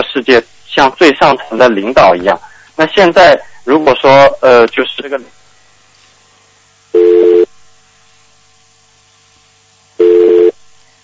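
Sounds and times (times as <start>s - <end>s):
speech: 0.2s - 5.4s
telephone busy-tone beeps: 7.0s - 7.5s, 10.0s - 10.6s.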